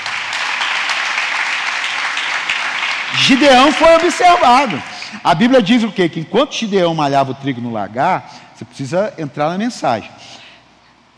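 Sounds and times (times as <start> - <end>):
audience applause: 0.0 - 5.2
speech: 3.2 - 10.2.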